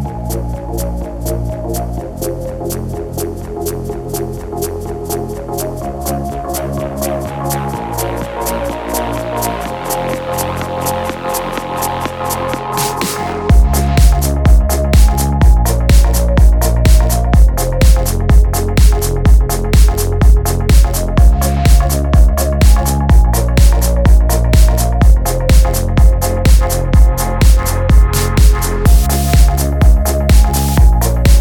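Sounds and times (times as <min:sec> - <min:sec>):
purple noise: 0:12.4 - 0:31.4.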